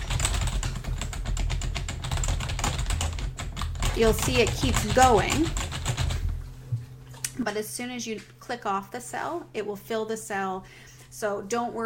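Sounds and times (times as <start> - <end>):
typing on a computer keyboard into spreadsheet cells: 0.0 - 6.2
speech: 4.0 - 5.7, 7.4 - 11.8.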